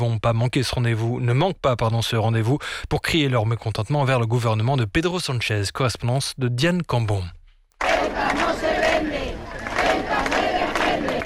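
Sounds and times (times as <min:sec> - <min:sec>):
speech: 0:00.0 - 0:08.0
demonstrators chanting slogans: 0:07.8 - 0:11.2.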